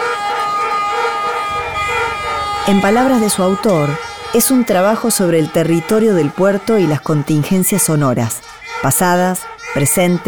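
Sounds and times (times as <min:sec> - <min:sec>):
ship horns droning: 0:00.0 - 0:10.2
low rumbling background from the naval base: 0:00.6 - 0:08.0
speech: 0:02.6 - 0:10.2.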